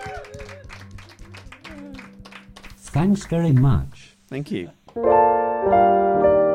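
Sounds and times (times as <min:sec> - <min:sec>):
whoops and cheering voices: 0:00.0 - 0:02.1
audience applause: 0:00.0 - 0:03.9
speech: 0:02.9 - 0:06.4.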